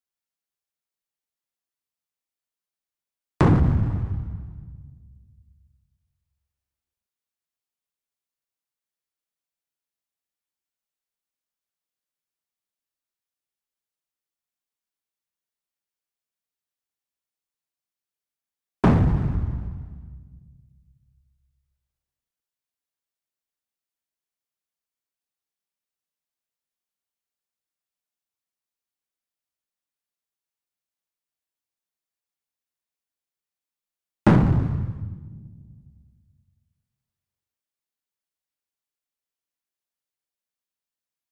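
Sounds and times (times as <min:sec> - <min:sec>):
clean explosions: 0:03.4 - 0:04.9, 0:18.9 - 0:20.3, 0:34.3 - 0:35.7.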